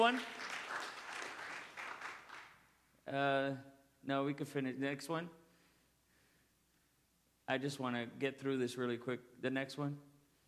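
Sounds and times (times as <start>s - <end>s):
speech: 0.0s - 0.4s, 3.1s - 5.4s, 7.5s - 10.1s
audience hand clapping: 0.0s - 2.7s.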